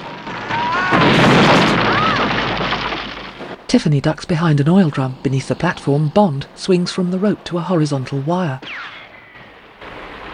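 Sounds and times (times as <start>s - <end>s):
missile exploding against a platform in a James Bond film: 0.0s - 3.6s, 8.6s - 10.3s
speech: 3.7s - 8.8s
thin whistling tones: 8.6s - 9.5s.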